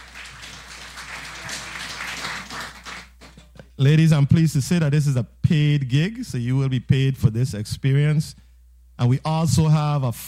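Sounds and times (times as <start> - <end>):
audience applause: 0.0 - 3.5
speech: 3.8 - 8.4, 9.0 - 10.2.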